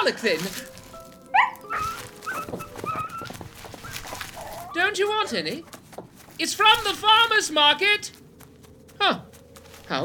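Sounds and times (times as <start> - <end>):
speech: 0.0 - 0.8, 4.8 - 5.7, 6.4 - 8.2, 9.0 - 9.3, 9.9 - 10.0
wolves whimpering: 1.3 - 5.4.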